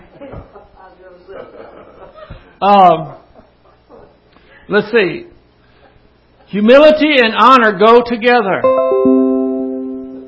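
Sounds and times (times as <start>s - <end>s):
speech: 2.6s - 3.2s, 4.7s - 5.3s, 6.5s - 8.8s
doorbell ringing: 8.6s - 10.2s.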